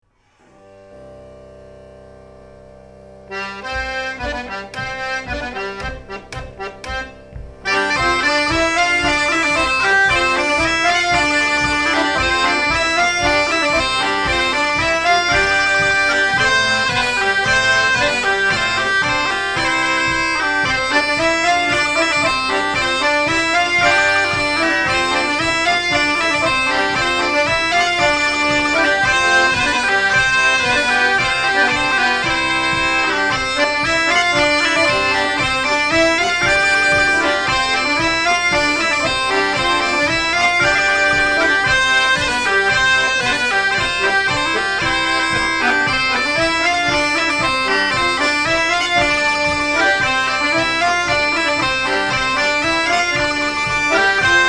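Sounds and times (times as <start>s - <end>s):
instrumental branle dance tune: 3.2s - 54.4s.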